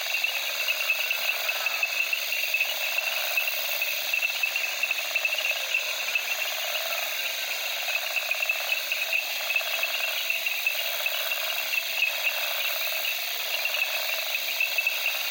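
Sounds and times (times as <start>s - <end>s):
night crickets chorus in the Okavango, Africa: 0.0s - 15.3s.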